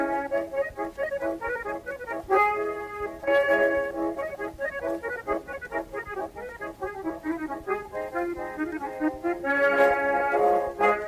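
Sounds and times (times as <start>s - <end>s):
classic klezmer accordion music: 0.0s - 11.0s.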